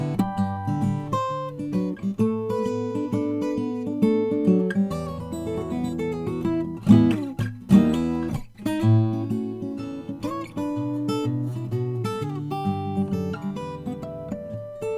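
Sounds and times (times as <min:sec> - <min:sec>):
guitar: 0:00.0 - 0:14.9.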